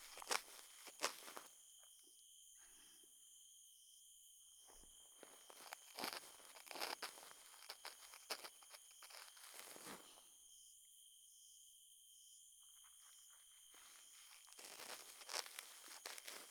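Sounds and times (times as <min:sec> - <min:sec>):
ear cleaning on right ear: 0:00.0 - 0:01.5, 0:05.5 - 0:09.8, 0:13.7 - 0:16.4.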